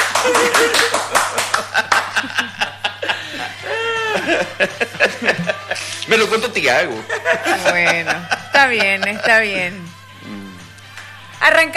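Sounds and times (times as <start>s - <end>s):
crowd clapping: 0.0s - 2.6s
people chuckling and laughing: 0.0s - 6.1s, 6.9s - 9.9s
person speaking in a laughing sing-song voice: 2.2s - 6.4s, 7.0s - 10.7s
speech: 6.1s - 9.9s, 11.4s - 11.7s.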